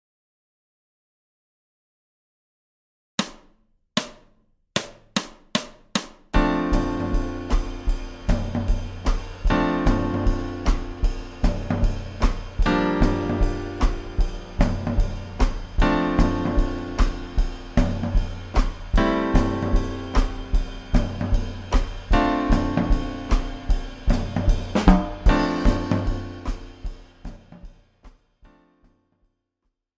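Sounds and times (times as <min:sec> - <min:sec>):
rudimentary blues music: 0:06.4 - 0:27.4.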